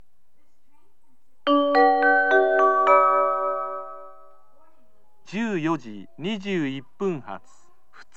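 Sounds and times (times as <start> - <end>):
local train station ambience in Kyoto: 1.4 - 7.3.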